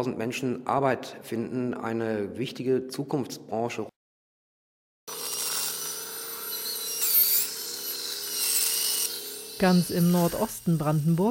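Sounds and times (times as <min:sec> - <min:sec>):
speech: 0:00.0 - 0:04.0, 0:09.6 - 0:11.2
high-pitched dental drill whining on a patient's molar: 0:05.1 - 0:11.2.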